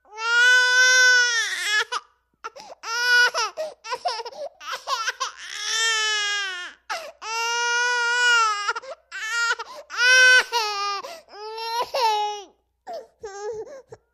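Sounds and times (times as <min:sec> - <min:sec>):
10-month-old baby crying indoors: 0:00.1 - 0:14.1.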